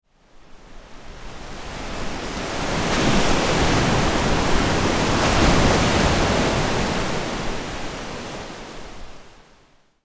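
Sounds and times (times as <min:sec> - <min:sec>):
ocean waves: 0:01.9 - 0:09.1.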